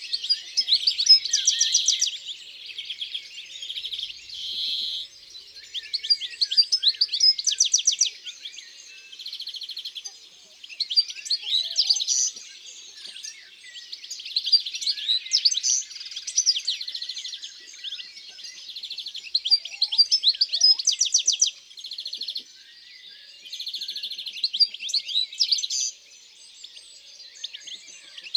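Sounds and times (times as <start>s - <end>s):
European greenfinch song: 0.0s - 28.3s.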